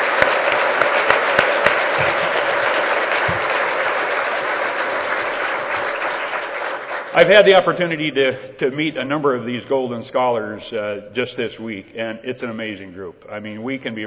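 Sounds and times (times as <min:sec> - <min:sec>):
audience applause: 0:00.0 - 0:08.1
speech: 0:07.2 - 0:14.0.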